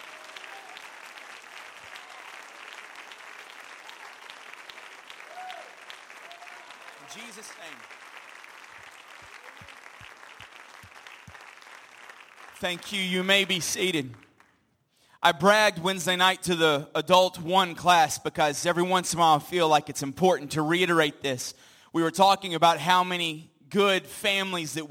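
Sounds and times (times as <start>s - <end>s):
voices cheering: 0.0s - 14.0s
audience hand clapping applause: 0.0s - 14.6s
speech: 7.1s - 8.1s, 12.6s - 14.2s, 15.2s - 24.8s.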